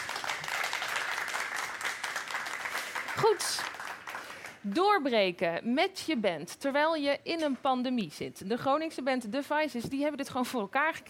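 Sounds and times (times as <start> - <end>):
group applause: 0.0 - 4.8
speech: 3.3 - 3.7, 4.6 - 11.0.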